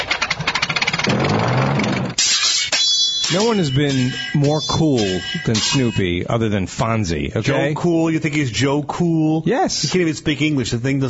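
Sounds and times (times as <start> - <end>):
biplane engine starting: 0.0 - 2.2
speech: 3.3 - 11.0.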